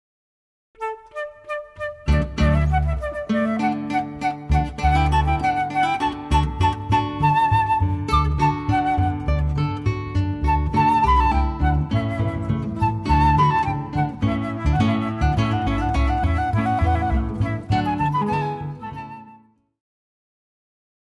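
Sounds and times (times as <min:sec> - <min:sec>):
guitar: 0:00.8 - 0:19.6
flute: 0:00.8 - 0:19.8
bass: 0:02.1 - 0:03.6, 0:04.3 - 0:19.0.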